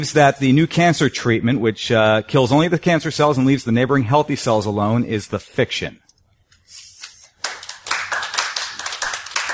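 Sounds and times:
speech: 0.0 - 6.0
audience applause: 7.4 - 9.5.

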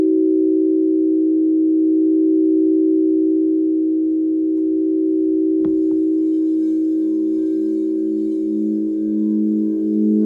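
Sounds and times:
second lower crystal bowl tone: 0.0 - 10.2
crystal singing bowl ringing: 4.6 - 10.2.

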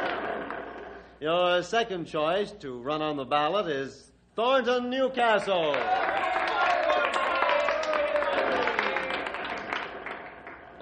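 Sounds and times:
speech: 1.2 - 6.4
crowd applauding: 5.4 - 10.8.

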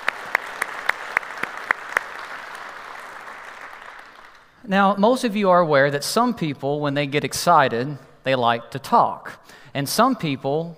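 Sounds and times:
church congregation clapping: 0.0 - 4.6
speech: 4.7 - 10.7.

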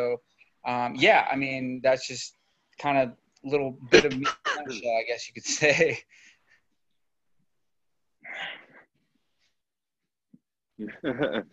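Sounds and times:
speech: 0.0 - 6.3, 10.8 - 11.5
person coughing after drinking soda: 3.9 - 4.8.

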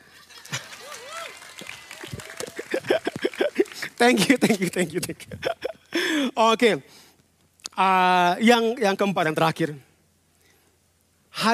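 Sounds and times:
audience applause: 0.0 - 4.8
laughter: 2.2 - 5.9
speech: 4.0 - 7.0, 7.8 - 9.9, 11.4 - 11.5.

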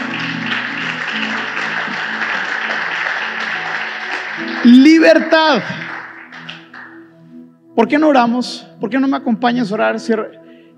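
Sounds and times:
audience applause: 0.0 - 7.0
speech: 4.7 - 5.8, 7.8 - 10.4.

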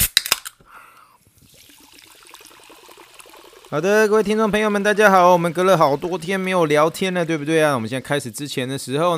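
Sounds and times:
sparkling water fizzing: 1.2 - 7.2
speech: 3.7 - 9.1.

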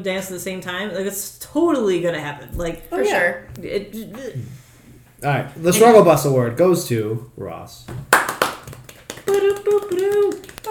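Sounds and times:
speech: 0.0 - 4.6, 5.2 - 8.1, 9.3 - 10.6
hands clapping: 8.0 - 10.6.

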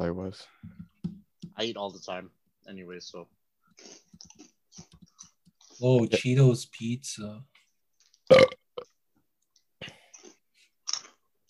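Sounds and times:
speech: 0.0 - 0.7, 1.6 - 4.3, 5.8 - 7.5
loud low croaking burp: 8.3 - 8.8.

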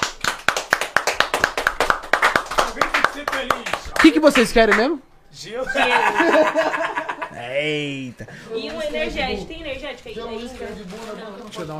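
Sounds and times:
people clapping in unison: 0.0 - 5.0
speech: 3.4 - 11.7
laughter: 5.5 - 8.6.

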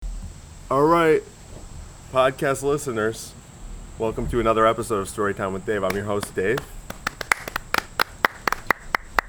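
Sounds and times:
speech: 0.7 - 1.3, 2.1 - 3.4, 4.0 - 6.8
live audience sparse clapping: 5.8 - 9.2.

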